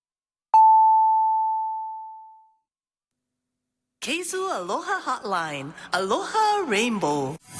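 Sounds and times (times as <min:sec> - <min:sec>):
radio station time signal beep marking six o'clock: 0:00.6 - 0:02.4
speech: 0:04.0 - 0:07.5.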